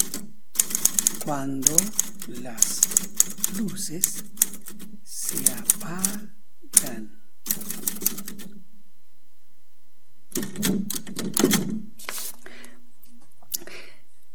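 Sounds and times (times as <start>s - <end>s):
typewriter keys clacking: 0.0s - 6.2s, 6.8s - 8.5s, 10.3s - 11.8s
speech: 1.3s - 4.4s, 5.3s - 7.1s.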